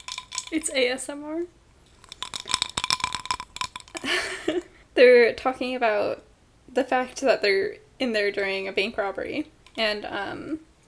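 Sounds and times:
ice cubes clinking in a glass: 0.0 - 0.7, 2.0 - 4.4
speech: 0.5 - 1.6, 4.0 - 10.7.

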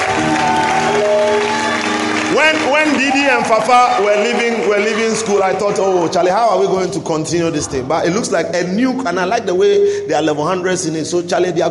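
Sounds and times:
audience clapping: 0.0 - 6.8
speech: 2.4 - 11.7.

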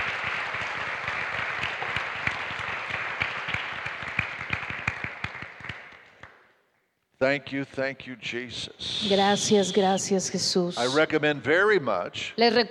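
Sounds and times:
audience applause: 0.0 - 6.3
speech: 7.2 - 12.6.

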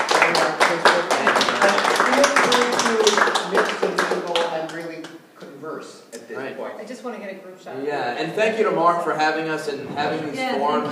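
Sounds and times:
audience applause: 0.0 - 5.0
speech: 7.0 - 10.8.

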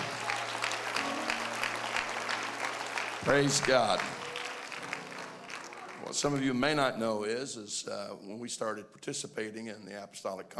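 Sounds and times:
audience clapping: 0.0 - 6.8
speech: 3.2 - 4.2, 6.1 - 10.5.

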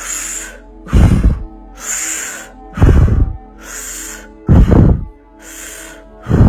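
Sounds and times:
deep breathing through the mouth during a guided breathing exercise: 0.0 - 6.4.

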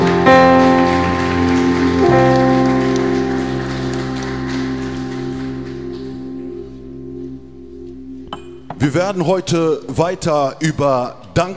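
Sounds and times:
audience applause: 0.0 - 6.2
speech: 8.8 - 11.5.

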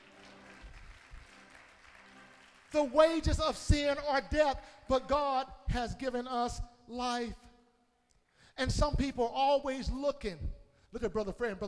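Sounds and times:
audience clapping hands: 0.0 - 4.0
speech: 2.7 - 7.4, 8.6 - 11.6.

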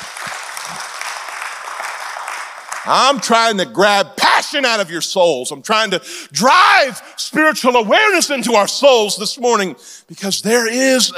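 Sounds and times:
audience clapping hands: 0.0 - 3.6
speech: 2.8 - 11.1.

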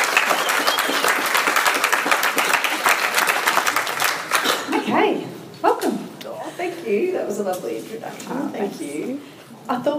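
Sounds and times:
audience applauding to welcome a guest to the stage: 0.0 - 4.8
speech: 6.9 - 9.9.

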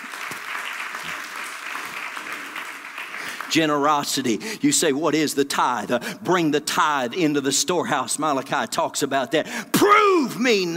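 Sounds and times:
audience clapping: 0.0 - 4.4
speech: 3.5 - 10.7.

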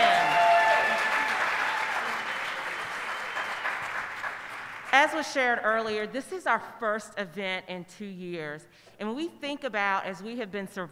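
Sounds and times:
audience applause: 0.0 - 4.9
speech: 5.0 - 10.9.

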